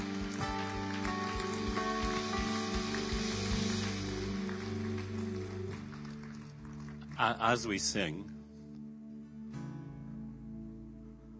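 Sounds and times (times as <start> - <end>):
audience applause: 0.0 - 8.2
speech: 7.2 - 8.4.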